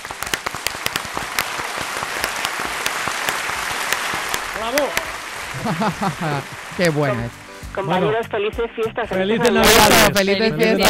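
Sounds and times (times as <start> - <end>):
applause: 0.0 - 7.8
laughter: 1.4 - 8.6, 9.4 - 10.8
speech: 4.6 - 10.8.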